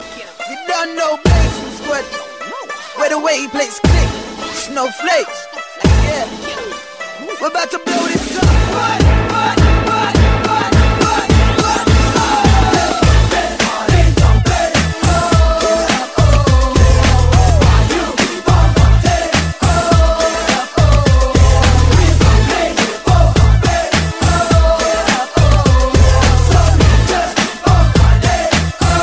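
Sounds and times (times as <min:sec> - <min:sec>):
dance hit: 0:00.0 - 0:29.0.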